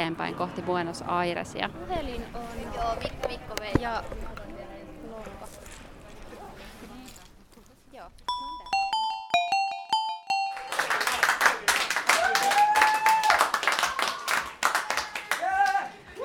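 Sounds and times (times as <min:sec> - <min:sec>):
speech: 0:00.0 - 0:05.6
short chiming melody: 0:08.3 - 0:11.2
crowd applause for an artist in a bar: 0:10.3 - 0:16.0.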